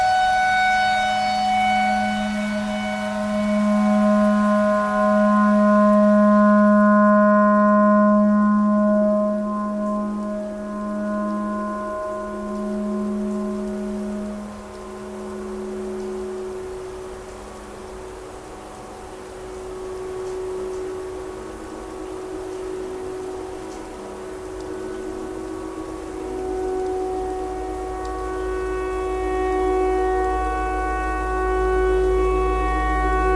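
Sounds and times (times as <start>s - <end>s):
clarinet imitating a tornado siren: 0.0s - 16.8s, 26.0s - 33.3s.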